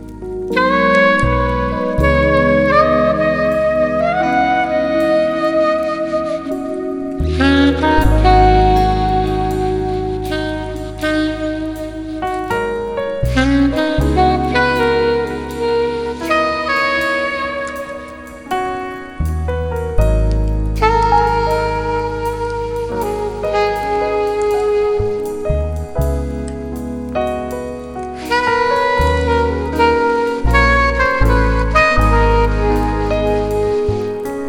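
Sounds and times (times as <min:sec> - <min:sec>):
jazz soundscape: 0:00.0 - 0:34.4.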